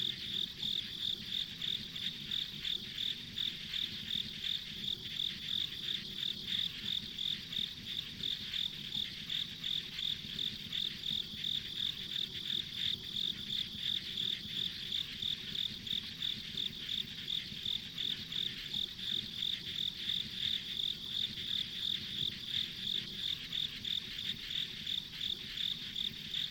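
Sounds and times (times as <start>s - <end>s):
insects chirping: 0.0s - 26.5s.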